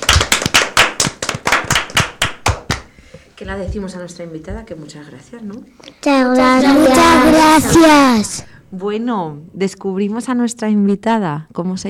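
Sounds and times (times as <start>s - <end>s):
hands clapping: 0.0s - 2.9s
speech: 3.4s - 11.8s.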